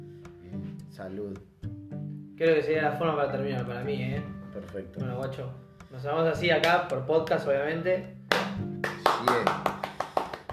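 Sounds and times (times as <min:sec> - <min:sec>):
speech: 0:01.0 - 0:01.8, 0:02.4 - 0:08.2, 0:09.2 - 0:09.8
hand clapping: 0:06.4 - 0:07.5, 0:08.2 - 0:10.5.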